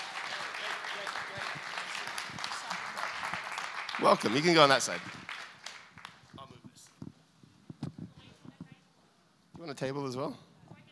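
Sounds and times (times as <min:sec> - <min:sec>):
audience applause welcoming a guest at a morning gathering: 0:00.0 - 0:06.4
speech: 0:04.0 - 0:05.2, 0:09.8 - 0:10.5.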